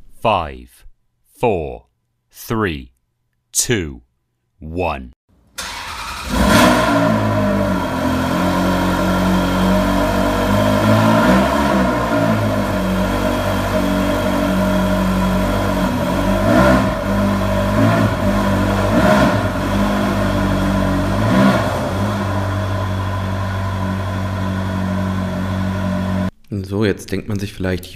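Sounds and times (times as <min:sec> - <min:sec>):
speech: 0:00.2 - 0:02.9, 0:03.6 - 0:05.2, 0:26.6 - 0:27.9
car engine cold start revving: 0:05.6 - 0:26.3.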